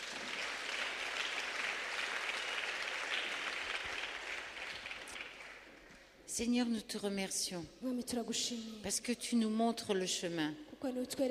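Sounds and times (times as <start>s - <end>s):
church congregation applauding during a French-language prayer service: 0.0s - 6.1s
speech: 6.4s - 11.2s.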